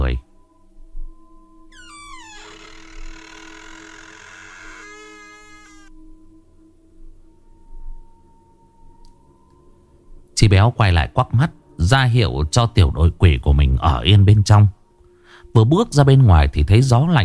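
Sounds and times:
speech: 0.1 - 0.3, 10.4 - 14.8, 15.5 - 17.2
wooden door creaking open: 1.7 - 5.9.

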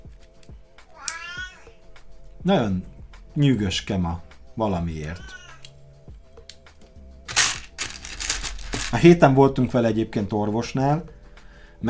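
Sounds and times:
cat meowing as it walks away after being petted: 0.9 - 1.8, 5.2 - 5.7
speech: 2.4 - 5.4, 9.0 - 11.2.

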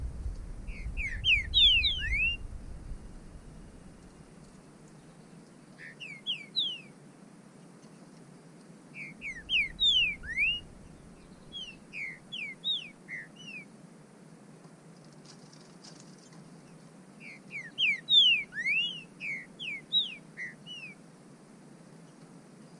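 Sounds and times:
low rumble: 0.0 - 4.2, 9.6 - 11.5
bird song of clear descending whistles: 0.7 - 2.5, 5.8 - 6.9, 9.0 - 13.7, 17.2 - 21.0.

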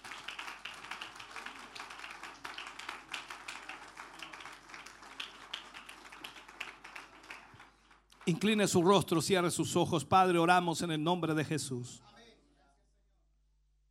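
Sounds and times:
audience applauding: 0.0 - 9.5
speech: 8.3 - 12.1.

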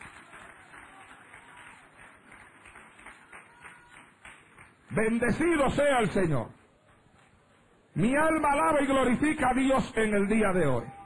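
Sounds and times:
audience applauding: 0.0 - 5.2
speech: 4.9 - 6.6, 8.0 - 11.0.

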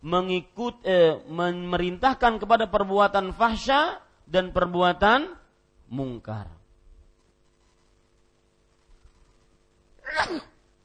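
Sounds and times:
speech: 0.0 - 6.6, 10.1 - 10.5
sneeze: 10.0 - 10.6.

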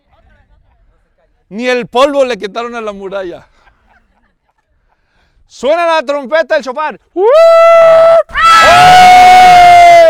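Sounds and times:
speech: 1.5 - 3.5, 5.5 - 10.0
group of people shouting loudly: 7.2 - 10.0.

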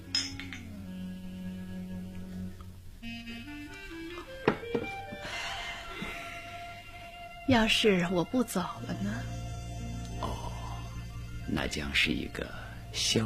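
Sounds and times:
glasses clinking in a toast: 0.0 - 0.7
music: 0.0 - 13.2
speech: 7.5 - 9.3, 11.5 - 13.2.

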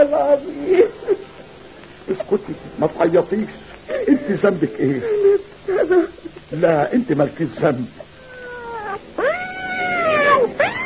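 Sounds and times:
speech: 0.1 - 1.0, 2.4 - 8.0
strange black cat yowling: 8.2 - 10.8.

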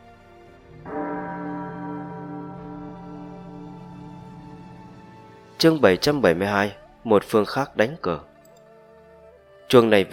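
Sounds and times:
golden bell tolling, echoing: 0.8 - 6.6
speech: 5.6 - 8.3, 9.7 - 10.1.

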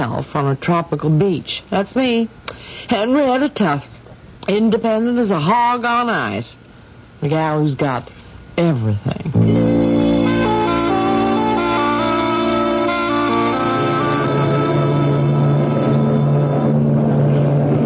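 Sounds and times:
speech: 0.0 - 3.9, 4.5 - 6.6, 7.2 - 9.7
passenger ship's engines droning as it arrives in port at St. Martin: 9.6 - 17.8.

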